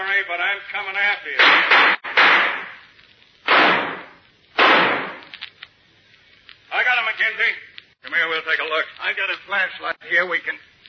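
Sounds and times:
speech: 0.0s - 2.6s, 7.3s - 10.7s
gunshots in a radio drama: 1.4s - 5.4s.

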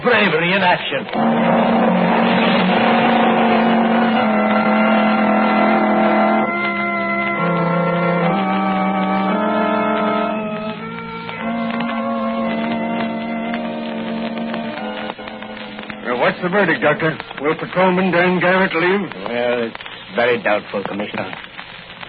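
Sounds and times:
speech: 0.0s - 2.0s, 16.4s - 21.5s
ambulance engine roaring as it arrives: 1.0s - 17.4s.

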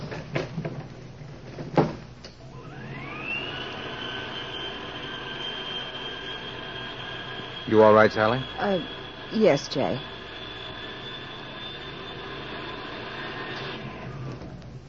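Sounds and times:
elevator motor whining and humming as the car ascends: 2.4s - 14.8s
speech: 7.7s - 10.1s
elevator door sliding and shutting: 10.0s - 14.8s.

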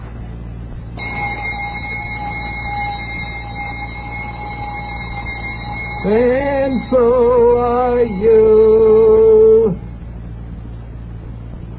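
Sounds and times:
voice imitating radio alarm clock starting up: 1.0s - 10.0s
speech: 6.0s - 9.8s.

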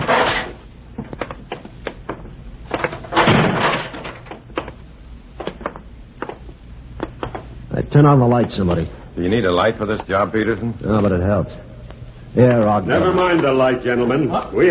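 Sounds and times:
heavy fire door opening and closing: 3.1s - 4.0s
speech: 8.0s - 11.7s, 12.4s - 14.7s.

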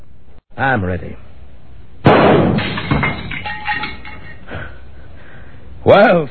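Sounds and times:
speech: 0.6s - 1.3s, 5.9s - 6.2s
pistol shot in a duel: 2.0s - 3.1s
candle holder breaking and clattering: 2.5s - 4.4s.

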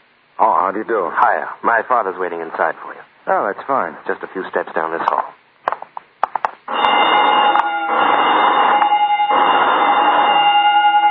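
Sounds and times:
speech: 0.4s - 5.4s
burglar alarm being tested: 6.7s - 11.0s.

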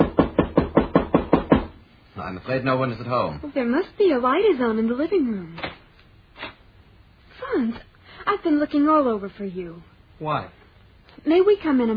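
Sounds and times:
knocking on a door: 0.0s - 1.8s
speech: 2.3s - 5.8s, 7.6s - 10.6s, 11.2s - 11.9s.

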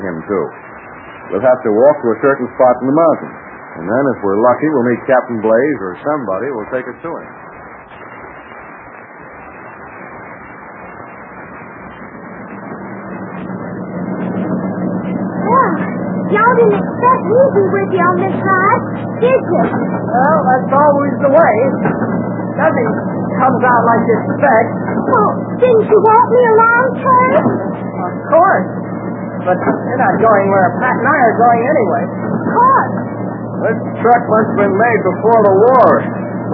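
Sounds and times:
old army truck driving: 0.0s - 36.5s
speech: 0.3s - 0.7s, 1.3s - 7.4s, 16.4s - 28.8s, 29.4s - 36.5s.

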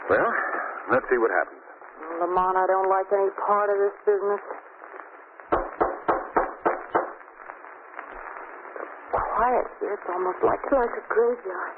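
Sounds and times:
faint hiss: 0.0s - 11.7s
speech: 0.1s - 4.7s, 9.5s - 11.7s
knocks on a wooden front door: 5.5s - 7.2s.

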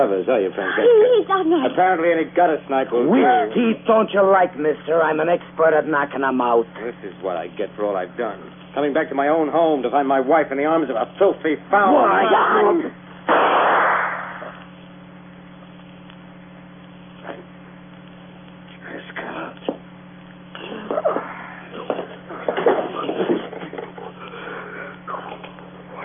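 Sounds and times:
speech: 0.0s - 13.6s
hum: 0.0s - 26.0s
gunshot: 13.3s - 14.6s.

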